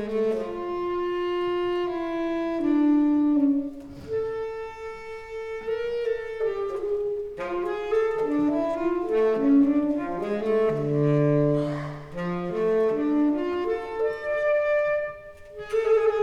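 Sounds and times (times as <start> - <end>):
alto saxophone: 0.0 - 16.2.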